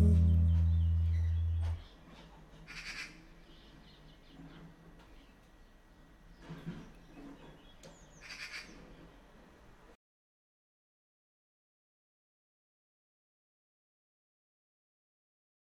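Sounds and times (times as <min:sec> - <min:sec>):
waltz melody: 0:00.0 - 0:01.8.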